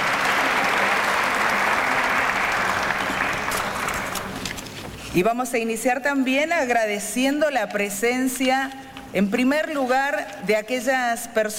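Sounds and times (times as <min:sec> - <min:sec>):
audience applause: 0:00.0 - 0:04.8
speech: 0:05.2 - 0:11.5.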